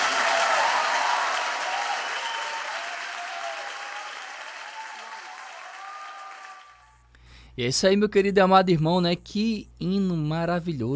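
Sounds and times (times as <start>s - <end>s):
audience applauding: 0.0s - 6.9s
speech: 7.6s - 10.9s.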